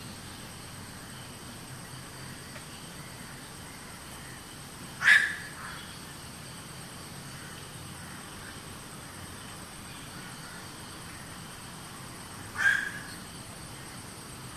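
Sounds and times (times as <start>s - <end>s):
night heron calling: 0.0s - 6.2s, 7.2s - 14.0s.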